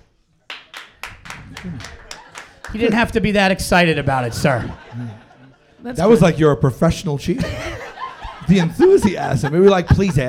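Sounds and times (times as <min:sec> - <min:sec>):
sparse audience applause: 0:00.5 - 0:03.3
laughter: 0:01.3 - 0:06.6, 0:07.2 - 0:10.2
speech: 0:01.6 - 0:02.0, 0:02.7 - 0:07.7, 0:08.5 - 0:10.2.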